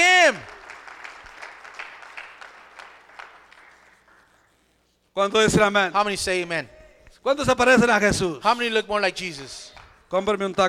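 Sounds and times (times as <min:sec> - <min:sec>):
audience applauding: 0:00.0 - 0:04.4
speech: 0:05.2 - 0:10.6.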